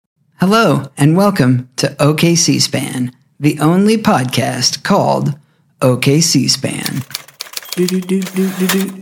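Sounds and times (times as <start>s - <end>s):
speech: 0.4s - 7.2s, 7.8s - 9.0s
typewriter keys clacking: 6.8s - 9.0s.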